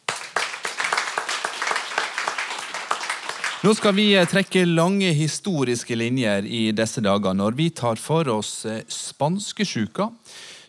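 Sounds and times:
group of people clapping: 0:00.0 - 0:04.6
speech: 0:03.6 - 0:10.5.

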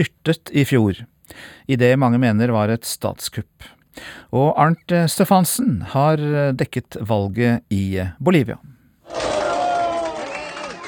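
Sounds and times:
speech: 0:00.0 - 0:09.2
high whoops: 0:09.1 - 0:10.8
supporters cheering and shouting over election result: 0:09.1 - 0:10.8.

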